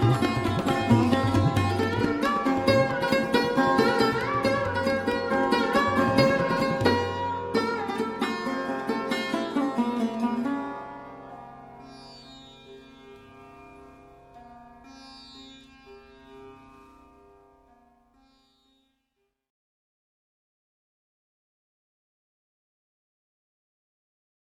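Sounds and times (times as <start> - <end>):
Hindustani raga music: 0.0 - 16.6.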